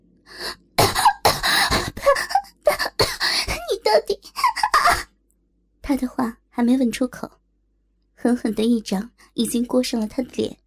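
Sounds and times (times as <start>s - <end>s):
violent coughing: 0.8s - 3.7s, 4.4s - 5.1s
speech: 6.6s - 7.4s, 8.2s - 10.6s.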